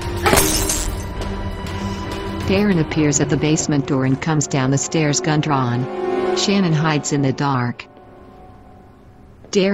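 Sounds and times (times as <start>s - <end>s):
light bulb shattering from a plank strike: 0.2s - 1.2s
speech: 2.5s - 7.9s, 9.6s - 9.7s.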